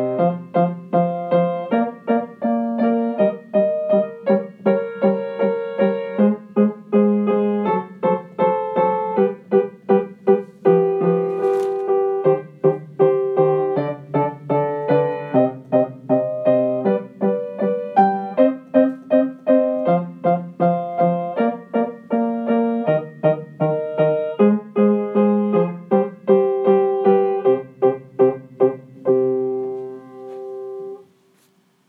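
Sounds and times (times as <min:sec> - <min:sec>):
piano piece: 0:00.0 - 0:31.2.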